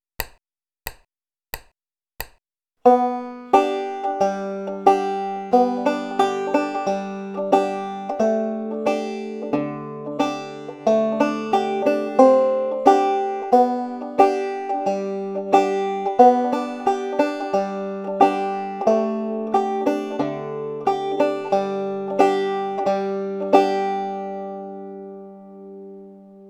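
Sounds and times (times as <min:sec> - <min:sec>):
banjo song accompaniment in thumb lead style: 0:02.8 - 0:26.4.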